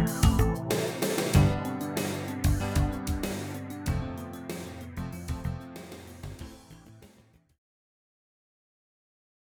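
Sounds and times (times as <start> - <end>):
Roland SC88 MIDI music: 0.0 - 7.0.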